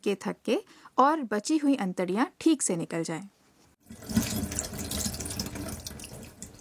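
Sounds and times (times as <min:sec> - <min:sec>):
speech: 0:00.0 - 0:04.2
fish being rinsed under tap water: 0:03.8 - 0:06.6
tap water running into a sink: 0:03.8 - 0:06.6.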